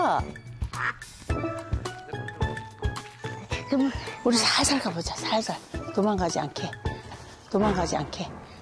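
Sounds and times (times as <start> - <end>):
speech: 0.2 - 1.8, 3.8 - 6.8, 7.5 - 8.4
large duck quacking: 0.8 - 1.0.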